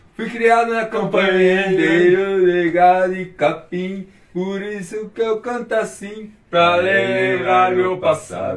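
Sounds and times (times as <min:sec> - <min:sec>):
men singing: 0:00.2 - 0:08.5.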